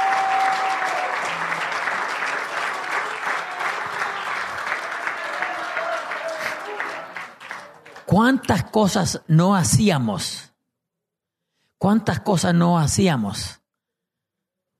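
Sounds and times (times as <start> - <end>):
audience applause: 0.0 - 8.1
speech: 8.1 - 10.5, 11.8 - 13.6.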